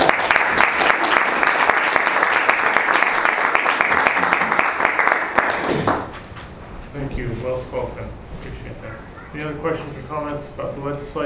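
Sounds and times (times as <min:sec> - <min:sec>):
audience applause: 0:00.0 - 0:06.2
speech: 0:09.4 - 0:11.2.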